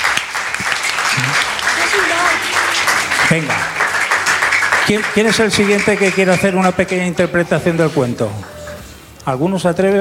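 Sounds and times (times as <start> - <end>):
audience applause: 0.0 - 8.8
low vocal sound: 1.1 - 1.5
speech: 3.3 - 3.8, 4.9 - 8.5, 9.3 - 9.9.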